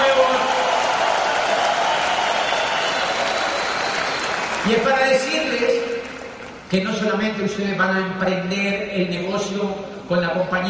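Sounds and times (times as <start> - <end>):
audience applause ovation: 0.0 - 6.6
speech: 4.6 - 5.9, 6.7 - 10.6.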